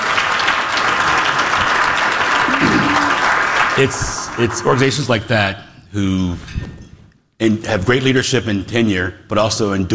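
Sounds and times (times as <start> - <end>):
applause: 0.0 - 4.9
speech: 3.8 - 6.6, 7.4 - 9.9.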